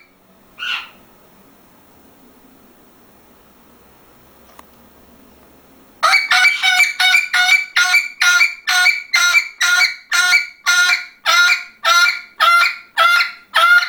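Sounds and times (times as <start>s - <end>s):
parrot giving loud grating calls: 0.0s - 1.0s, 6.0s - 13.8s.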